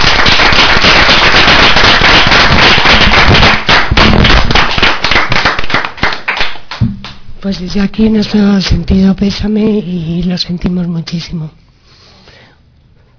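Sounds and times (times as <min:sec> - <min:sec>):
audience applause: 0:00.0 - 0:06.6
speech: 0:07.5 - 0:11.6.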